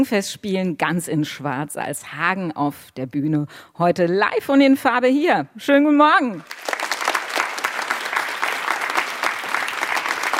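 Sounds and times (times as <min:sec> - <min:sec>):
speech: 0:00.0 - 0:06.6
audience clapping in the foyer of the Wormser Stadttheater: 0:06.4 - 0:10.3.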